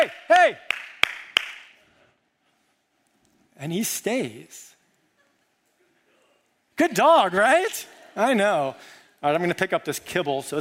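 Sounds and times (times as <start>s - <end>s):
speech: 0.0s - 0.8s, 3.6s - 4.7s, 6.8s - 10.5s
hand clapping to distract a dog: 0.0s - 1.8s.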